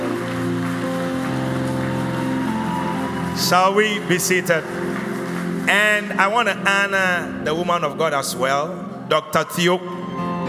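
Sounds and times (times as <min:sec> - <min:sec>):
audience clapping hands: 0:00.0 - 0:07.0
speech: 0:03.4 - 0:05.1, 0:05.7 - 0:10.4.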